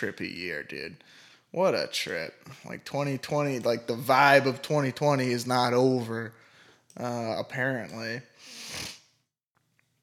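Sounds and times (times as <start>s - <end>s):
speech: 0.0s - 6.4s, 7.0s - 8.9s
nose sniffing: 8.4s - 9.1s.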